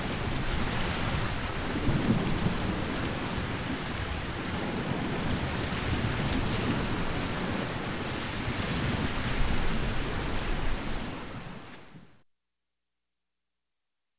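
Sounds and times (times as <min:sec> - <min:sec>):
light ocean surf waves: 0:00.0 - 0:12.2.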